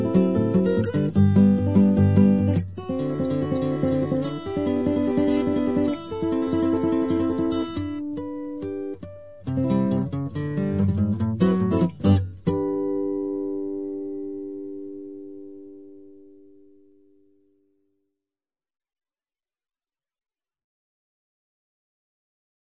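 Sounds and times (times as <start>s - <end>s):
guitar: 0.0s - 17.7s.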